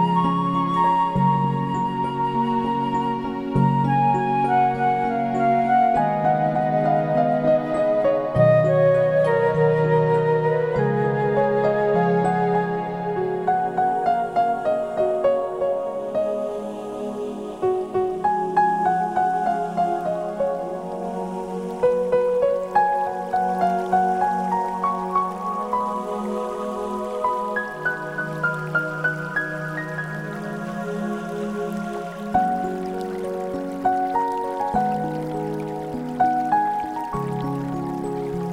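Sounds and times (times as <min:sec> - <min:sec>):
relaxing music: 0:00.0 - 0:38.5
waterfall: 0:00.0 - 0:38.5.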